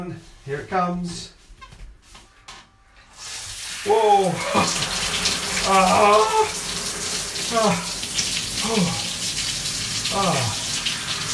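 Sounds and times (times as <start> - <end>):
speech: 0.0 - 1.4, 3.8 - 4.9, 5.6 - 6.6, 7.5 - 9.0, 10.1 - 10.6
shower water running: 3.0 - 11.3.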